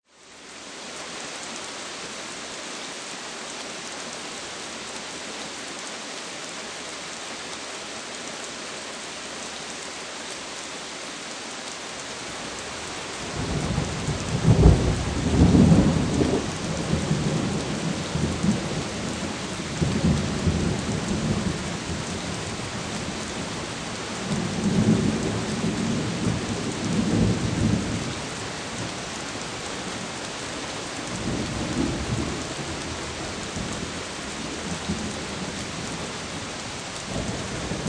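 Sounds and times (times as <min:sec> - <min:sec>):
medium rainfall in a thunderstorm: 0:00.0 - 0:37.8.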